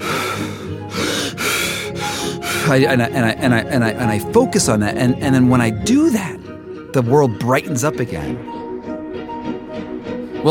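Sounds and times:
forceful breathing technique demonstrated: 0.0s - 2.8s
speech: 2.7s - 8.6s.

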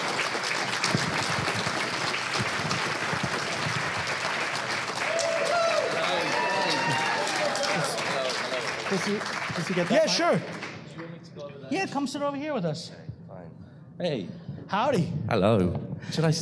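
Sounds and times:
audience applause welcoming a guest on stage: 0.0s - 10.8s
speech: 8.9s - 10.6s, 11.7s - 13.1s, 14.0s - 16.4s.

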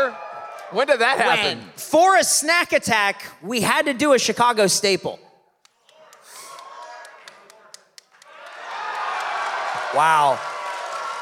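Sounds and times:
speech: 0.0s - 5.2s, 10.0s - 10.5s
audience applause: 6.1s - 11.1s.

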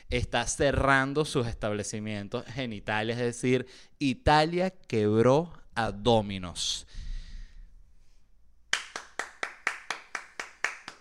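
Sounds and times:
speech: 0.1s - 7.0s
applause sound effect of sharp crisp hand claps: 8.7s - 10.9s.

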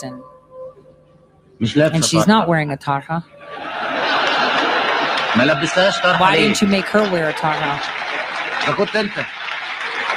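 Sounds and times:
speech: 0.0s - 0.4s, 1.6s - 3.8s, 5.3s - 8.0s, 8.6s - 9.4s
people laughing and calling out: 1.7s - 2.4s, 3.3s - 9.2s
crowd applause: 3.5s - 10.1s.

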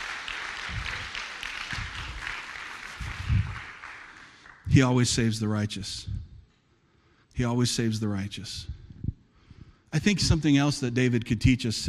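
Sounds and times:
audience applauding: 0.0s - 4.7s
speech: 4.8s - 6.2s, 7.4s - 8.8s, 9.9s - 11.8s.

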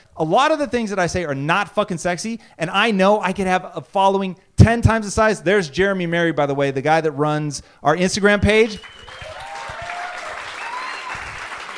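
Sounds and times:
speech: 0.2s - 9.3s
audience applause: 8.8s - 11.7s.

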